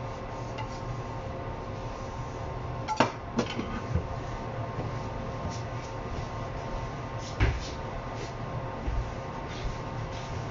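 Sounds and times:
kitchen low hum with faint whining tones: 0.0 - 10.5
kitchen clatter: 2.9 - 3.8.

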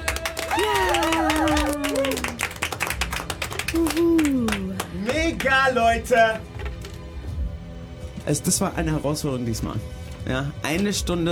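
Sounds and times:
person cheering and shouting: 0.0 - 2.5, 3.7 - 5.2
audience applause: 0.0 - 5.6
speech: 5.4 - 6.5, 8.3 - 11.3.

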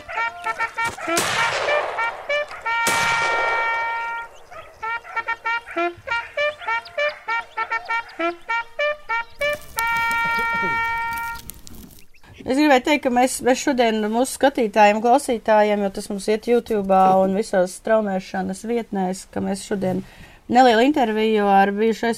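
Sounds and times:
repeated honking tonal notes: 0.0 - 11.5
hunting gunshots: 0.8 - 4.4
speech: 12.5 - 22.1.

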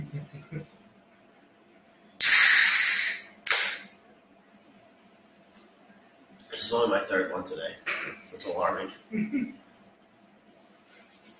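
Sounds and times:
drink can or bottle cracked open and fizzing: 2.2 - 3.8
speech: 6.7 - 9.6.

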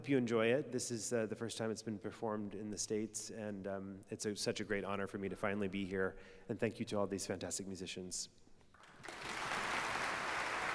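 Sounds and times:
speech: 0.0 - 8.5
concert audience applause: 8.8 - 10.7.

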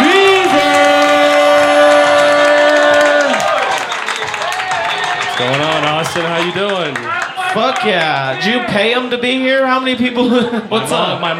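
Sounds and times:
audience applauding and cheering: 0.0 - 9.1
speech: 6.0 - 11.3
laughter: 10.1 - 11.3.

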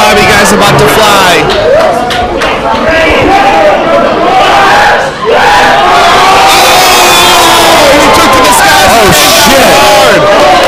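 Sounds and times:
wrestling crowd roaring and cheering: 0.0 - 10.6.

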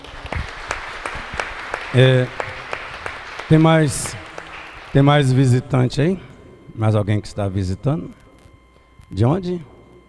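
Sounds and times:
audience applause: 0.0 - 5.3
speech: 1.9 - 2.5, 3.5 - 4.2, 4.9 - 8.2, 9.1 - 9.7.

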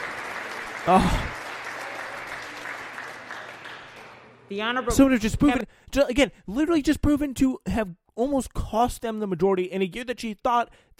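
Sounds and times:
crowd applause for a speaker: 0.0 - 4.5
speech: 0.8 - 1.3, 4.5 - 10.9.

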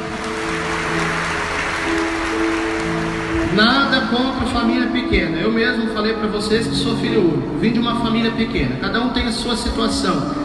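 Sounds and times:
crowd applause for mothers: 0.0 - 4.4
speech: 3.6 - 10.4.

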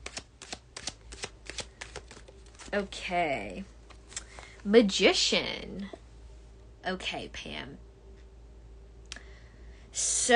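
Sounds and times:
tarot cards shuffling: 0.0 - 2.8
speech: 2.7 - 3.8, 4.6 - 6.0, 6.8 - 7.9.

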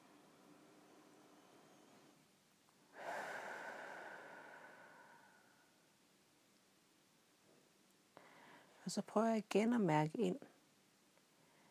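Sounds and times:
deep breath: 2.9 - 5.9, 8.2 - 8.8
speech: 8.9 - 10.5.

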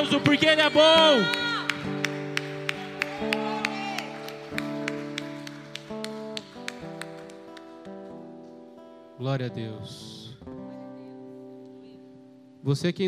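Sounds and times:
speech: 0.0 - 2.0, 9.2 - 10.2, 12.6 - 13.0
audience applause: 0.8 - 7.8.

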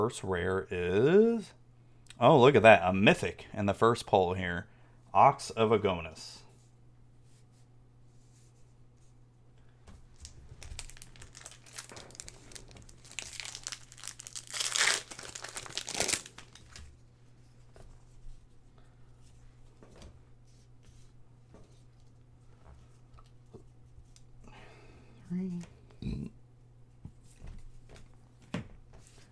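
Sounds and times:
speech: 0.0 - 1.6, 2.2 - 6.4
foil wrapper of a Magic The Gathering booster pack crinkling: 10.1 - 17.0.

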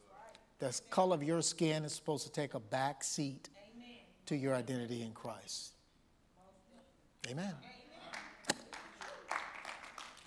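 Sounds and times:
speech: 0.6 - 3.5, 4.3 - 5.7, 7.2 - 7.8
audience clapping: 8.0 - 10.2.

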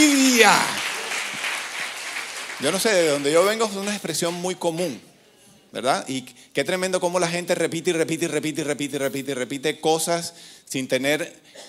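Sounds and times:
speech: 0.0 - 0.8, 2.6 - 5.1, 5.7 - 11.6
audience applause: 0.0 - 4.4.

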